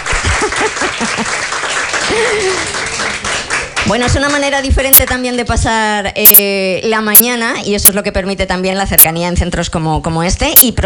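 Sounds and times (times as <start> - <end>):
audience applause: 0.0 - 3.9
speech: 3.9 - 10.8.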